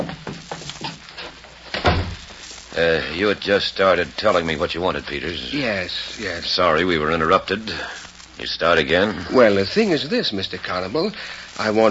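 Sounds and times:
door pushed shut with a solid thud: 1.8s - 2.2s
speech: 2.8s - 11.8s.

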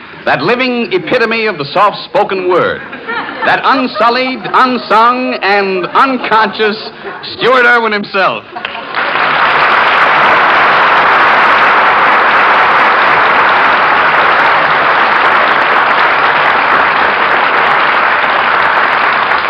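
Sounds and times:
speech: 0.2s - 9.1s
laughter: 2.6s - 7.5s, 8.4s - 9.4s
audience applause: 8.6s - 19.4s.

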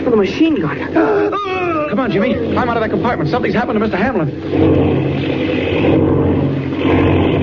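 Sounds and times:
propeller airplane engine droning: 0.0s - 7.4s
speech: 0.1s - 7.4s.

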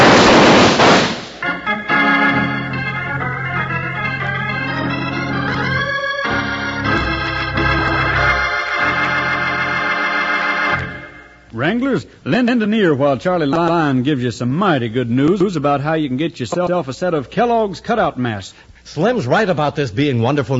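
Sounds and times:
gunshots in a radio western drama: 0.0s - 1.5s
dramatic music: 1.5s - 11.2s
speech: 11.7s - 20.5s.

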